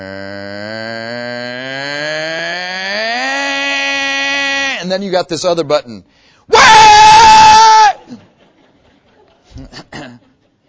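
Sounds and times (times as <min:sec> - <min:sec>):
person imitating a blender running at low speed: 0:00.0 - 0:04.8
speech: 0:04.9 - 0:06.9
laughter: 0:08.0 - 0:10.6.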